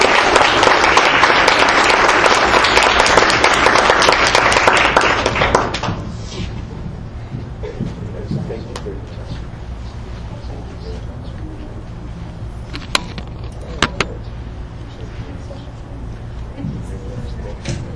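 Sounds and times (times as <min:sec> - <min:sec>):
audience applause for champion team: 0:00.0 - 0:06.0.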